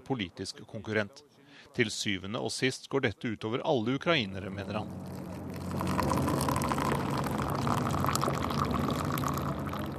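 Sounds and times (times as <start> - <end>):
speech: 0.1 - 6.0
tea water poured into a cup in a protest tent camp: 4.6 - 9.9.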